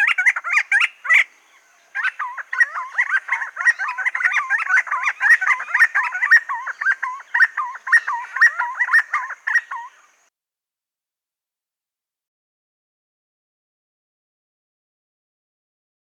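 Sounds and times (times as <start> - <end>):
silver-crowned friarbird calling: 0.0 - 10.3.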